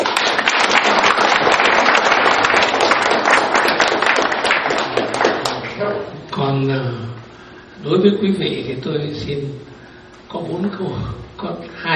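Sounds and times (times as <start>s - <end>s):
audience clapping at a Buddhist dharma talk: 0.0s - 5.9s
speech: 6.6s - 7.2s, 7.8s - 9.7s, 10.3s - 11.9s.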